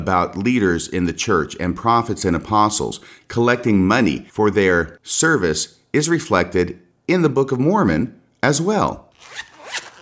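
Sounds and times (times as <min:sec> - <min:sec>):
speech: 0:00.0 - 0:09.8
zipper on a quad's cover unzipping: 0:09.2 - 0:10.0.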